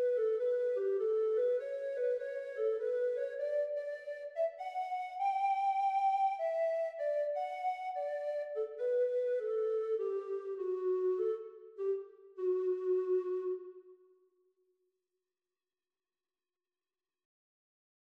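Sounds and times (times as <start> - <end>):
treble recorder playing at practise speed: 0.0 - 14.0.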